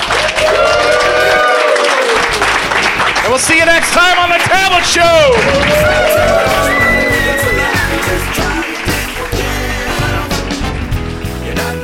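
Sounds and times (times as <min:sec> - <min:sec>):
whoops and cheers: 0:00.0 - 0:02.5, 0:05.2 - 0:08.4
crowd applauding loudly: 0:00.0 - 0:11.0
speech: 0:03.4 - 0:06.6.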